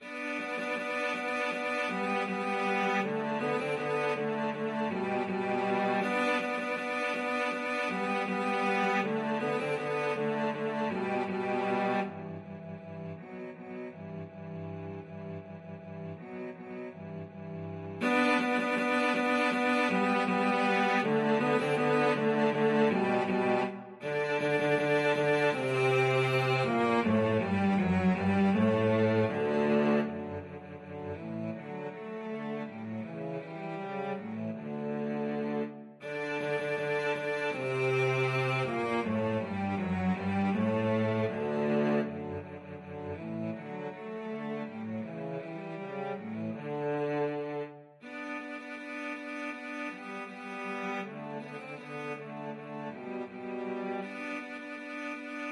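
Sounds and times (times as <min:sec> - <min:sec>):
cello duet: 0:00.0 - 0:55.4.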